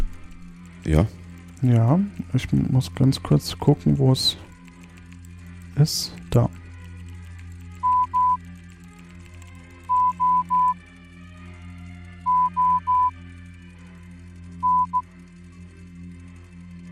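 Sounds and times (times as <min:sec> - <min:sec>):
speech: 0:00.8 - 0:04.4, 0:05.8 - 0:06.6
Morse code signal played from speaker: 0:07.8 - 0:08.4, 0:09.9 - 0:10.8, 0:12.3 - 0:13.1, 0:14.6 - 0:15.0.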